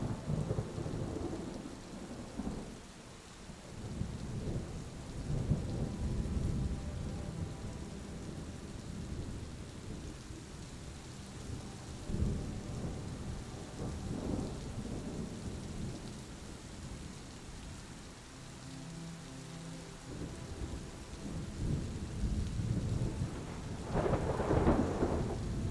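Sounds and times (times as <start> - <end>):
low rolling thunder: 0.0 - 2.8, 3.8 - 17.0, 20.2 - 25.7
faint sustained musical tones: 0.0 - 25.7
soft hiss of rain: 0.0 - 25.7.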